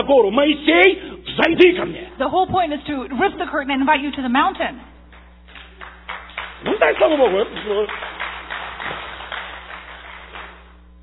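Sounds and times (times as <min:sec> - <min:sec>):
speech: 0:00.1 - 0:04.9, 0:06.6 - 0:08.1
a few people clapping hesitantly: 0:05.1 - 0:11.0.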